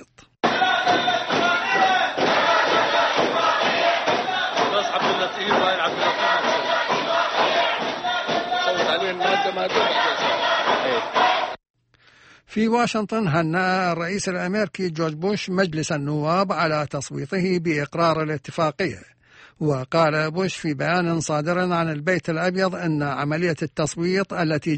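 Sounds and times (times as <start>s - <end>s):
thuds: 0.4s - 9.4s
opposition MPs chanting against an agreement during a parliamentary vote: 0.4s - 11.6s
speech: 12.5s - 24.7s.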